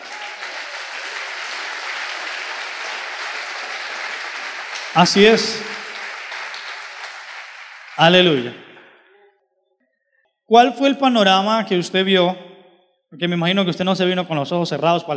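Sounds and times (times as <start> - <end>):
applause: 0.0 - 9.0
speech: 5.0 - 5.7, 8.0 - 8.6, 10.5 - 12.5, 13.1 - 15.1.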